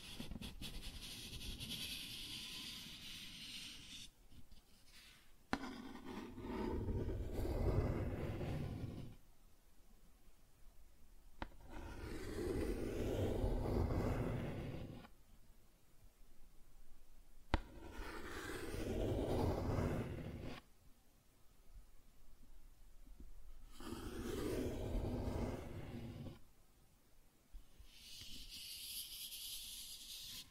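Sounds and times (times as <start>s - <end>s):
cardboard scratching and tracing: 0.0s - 9.2s, 11.6s - 15.1s, 17.6s - 20.6s, 23.7s - 26.4s.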